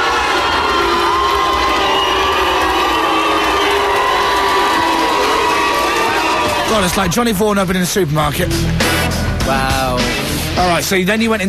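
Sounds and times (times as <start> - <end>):
crowd cheering as doors open: 0.0 - 7.9
speech: 6.8 - 11.4.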